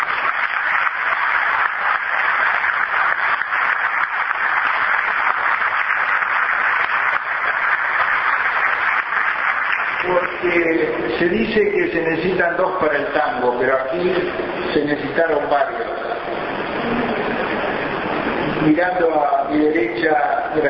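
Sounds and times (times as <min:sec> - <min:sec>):
crowd applause: 0:00.0 - 0:11.7, 0:15.3 - 0:18.8
speech: 0:11.6 - 0:15.9, 0:18.6 - 0:20.6.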